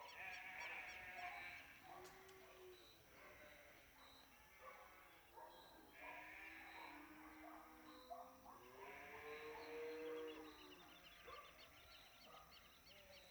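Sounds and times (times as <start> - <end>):
sheep in countryside at dawn near Piedra Sola Uruguay: 0.2 - 1.3, 6.1 - 6.7
dogs in countryside at dawn near Piedra Sola Uruguay: 1.0 - 2.4, 4.5 - 9.9, 10.8 - 11.6, 12.2 - 12.7.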